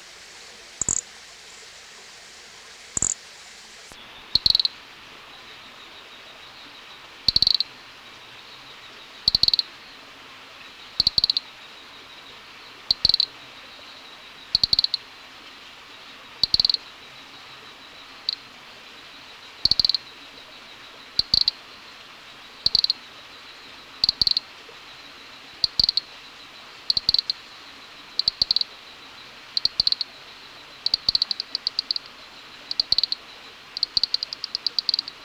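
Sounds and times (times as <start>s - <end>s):
faint hiss: 0.0s - 35.2s
Nesobia mjobergi ticking call: 0.8s - 1.1s, 3.0s - 3.2s, 4.4s - 4.7s, 7.3s - 7.7s, 9.3s - 9.6s, 11.0s - 11.4s, 12.9s - 13.3s, 14.5s - 15.0s, 16.4s - 16.8s, 19.6s - 20.0s, 21.2s - 21.6s, 22.6s - 23.0s, 24.0s - 24.4s, 25.6s - 26.1s, 26.9s - 27.4s, 28.2s - 28.7s, 29.4s - 35.2s.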